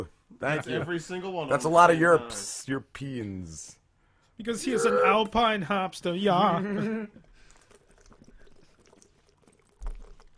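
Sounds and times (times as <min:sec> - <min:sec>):
speech: 0:00.0 - 0:03.8, 0:04.4 - 0:07.3
drinking water: 0:07.1 - 0:10.3.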